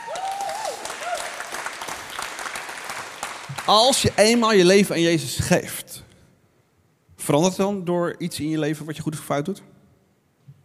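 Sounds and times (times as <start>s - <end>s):
audience applause: 0.0s - 4.2s
speech: 3.7s - 5.9s, 7.3s - 9.7s.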